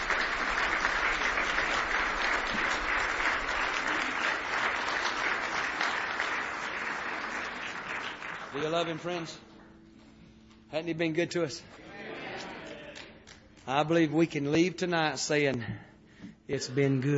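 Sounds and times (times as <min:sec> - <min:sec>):
audience applause and clapping: 0:00.0 - 0:09.6, 0:12.4 - 0:14.1
speech: 0:08.6 - 0:09.4, 0:10.7 - 0:11.8, 0:13.7 - 0:15.9, 0:16.5 - 0:17.1.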